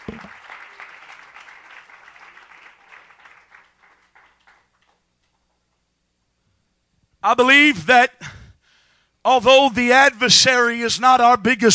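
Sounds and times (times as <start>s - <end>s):
audience clapping: 0.0s - 5.6s
speech: 7.2s - 8.3s, 9.2s - 11.7s.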